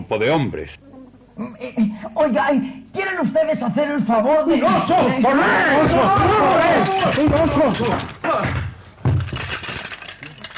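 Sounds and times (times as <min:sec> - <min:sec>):
speech: 0:00.1 - 0:08.6
glasses and chairs crashing and breaking: 0:05.7 - 0:10.5
debris smashing and clattering: 0:05.8 - 0:08.4, 0:09.0 - 0:10.5.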